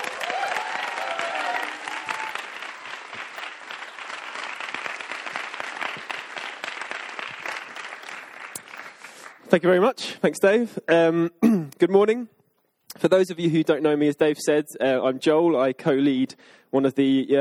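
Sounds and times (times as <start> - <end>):
church congregation at Christchurch applauding to welcome a preacher: 0.0 - 9.6
speech: 9.5 - 12.4, 13.0 - 17.4.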